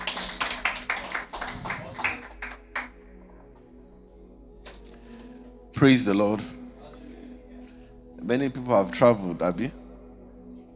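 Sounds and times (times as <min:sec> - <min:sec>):
audience applauding the choir: 0:00.0 - 0:03.0
speech: 0:05.8 - 0:06.6, 0:08.3 - 0:09.8.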